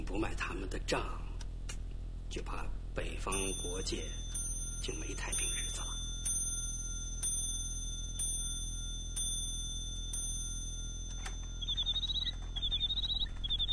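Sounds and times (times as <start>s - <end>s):
speech: 0.0s - 1.3s, 2.3s - 5.9s
mechanical bird-song clock chiming: 3.3s - 13.7s
mechanical bird-song clock chirping trills: 3.3s - 13.7s.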